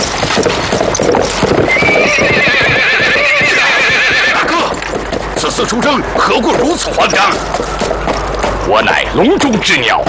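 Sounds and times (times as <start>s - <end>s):
several horses galloping: 0.0s - 10.0s
horse whinnying: 1.5s - 4.8s
speech: 5.6s - 10.0s.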